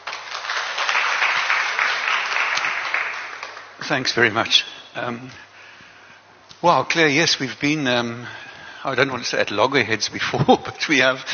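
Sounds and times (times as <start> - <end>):
audience applause welcoming speakers at a talk on novels and translation: 0.0 - 4.1
speech: 3.9 - 5.4, 6.6 - 11.3.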